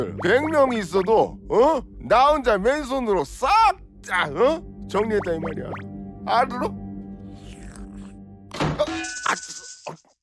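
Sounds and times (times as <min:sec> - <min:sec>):
speech: 0:00.0 - 0:06.8
wooden door flung open: 0:08.5 - 0:09.0.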